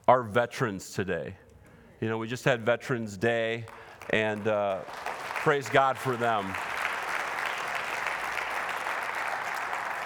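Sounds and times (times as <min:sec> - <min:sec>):
speech: 0:00.1 - 0:01.4, 0:02.0 - 0:06.7
audience clapping: 0:03.5 - 0:10.0.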